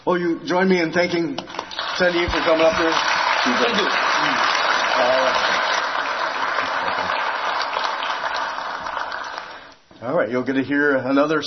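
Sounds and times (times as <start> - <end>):
speech: 0.1 - 5.6, 10.0 - 11.4
audience applause: 1.5 - 9.7.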